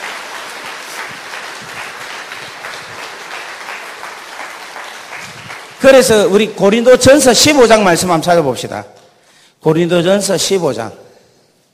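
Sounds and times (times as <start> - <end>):
audience applause: 0.0 - 5.9
speech: 5.8 - 9.0, 9.6 - 11.0.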